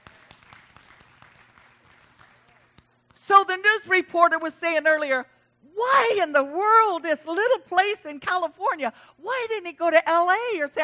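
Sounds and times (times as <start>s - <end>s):
audience clapping: 0.0s - 3.1s
speech: 3.3s - 10.8s.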